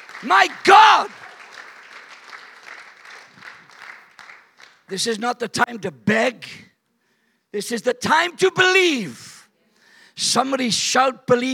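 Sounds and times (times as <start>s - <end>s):
audience applauding: 0.0s - 5.2s
speech: 0.2s - 1.2s, 4.9s - 6.7s, 7.5s - 9.3s, 10.2s - 11.5s.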